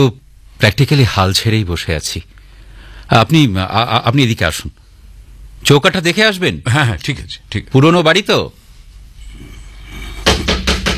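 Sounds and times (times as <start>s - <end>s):
speech: 0.0s - 2.3s, 3.1s - 4.8s, 5.6s - 8.6s
low hum: 0.0s - 10.9s
firm knocks on a door in an old house: 10.2s - 10.9s.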